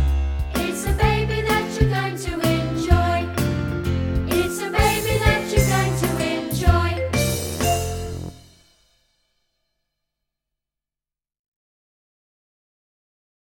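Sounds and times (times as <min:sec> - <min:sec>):
choir singing: 0:00.6 - 0:03.5, 0:04.3 - 0:08.4.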